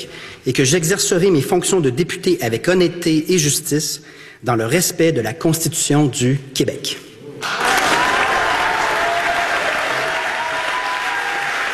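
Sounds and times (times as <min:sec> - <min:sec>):
speech: 0:00.0 - 0:07.7
crowd applauding after swearing-in: 0:07.4 - 0:11.7
faint cheering: 0:07.4 - 0:11.7.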